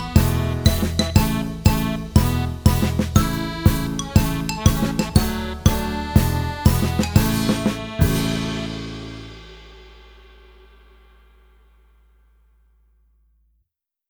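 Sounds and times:
rich music ending: 0.0 - 10.9.

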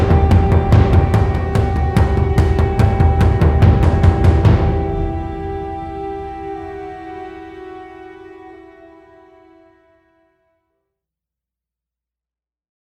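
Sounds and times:
percussion build-up: 0.0 - 6.8.

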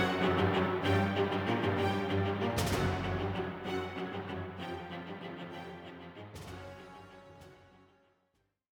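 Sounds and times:
battle music: 0.0 - 4.0.

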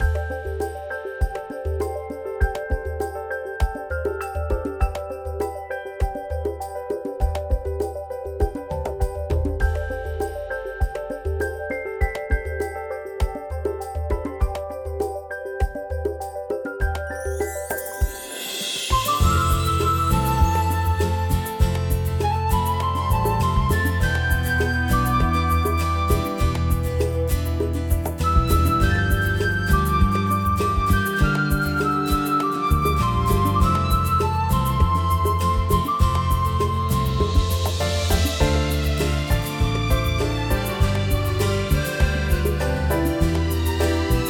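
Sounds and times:
village background music: 0.0 - 44.2.

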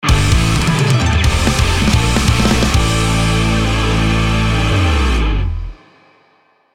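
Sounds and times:
victory background music: 0.2 - 4.8.

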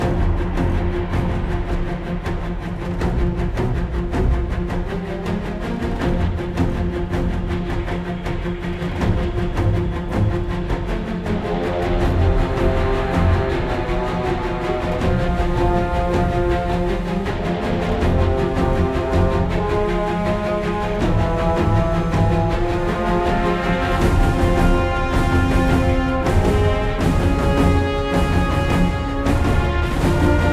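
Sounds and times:
high threat combat music loop: 0.0 - 30.5.

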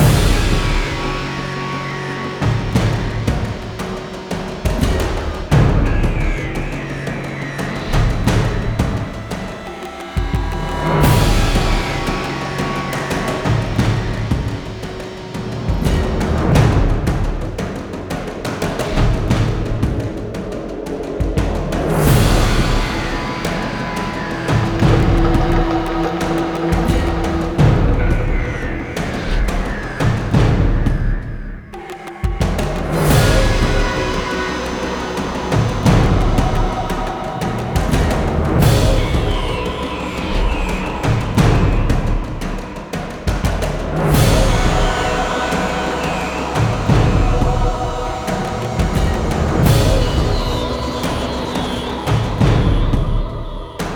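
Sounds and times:
percussion loop: 0.0 - 53.9.

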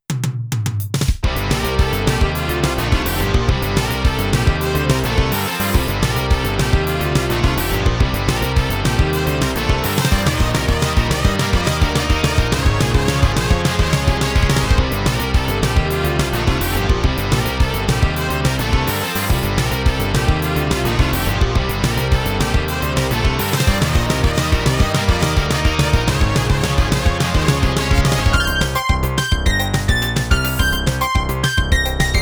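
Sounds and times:
Boss SC-88 synthesizer music: 1.2 - 32.1.

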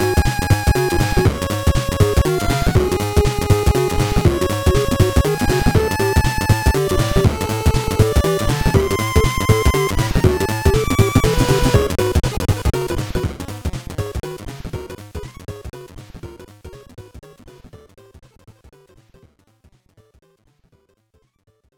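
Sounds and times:
boss fight music: 0.0 - 13.4.

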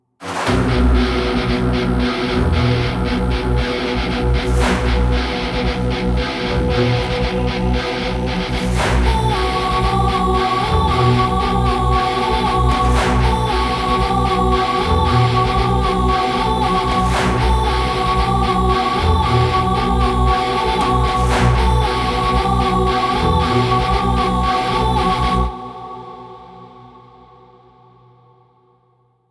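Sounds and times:
boss fight music: 0.2 - 24.5.

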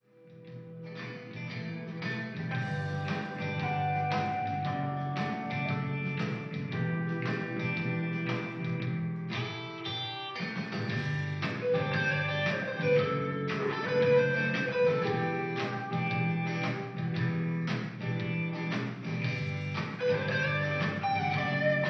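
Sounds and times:
rock music: 0.3 - 21.8.

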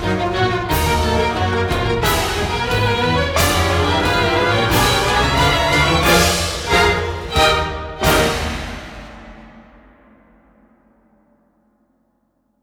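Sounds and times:
chaotic orchestral music: 0.0 - 9.6.

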